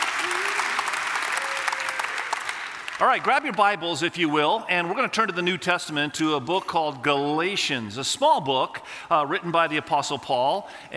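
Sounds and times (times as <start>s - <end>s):
church congregation applauding to welcome one another: 0.0s - 4.1s
speech: 3.0s - 10.9s.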